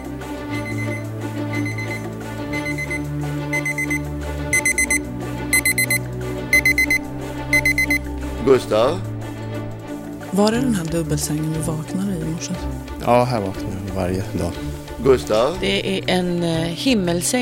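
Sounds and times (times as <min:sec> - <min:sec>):
alarm clock playing electronic melody: 0:00.0 - 0:08.1
speech: 0:08.5 - 0:09.1, 0:10.3 - 0:17.4.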